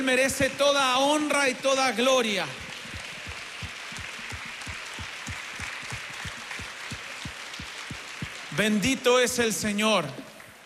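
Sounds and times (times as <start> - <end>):
speech: 0.0 - 2.6, 8.6 - 10.3
audience applause: 2.4 - 10.6.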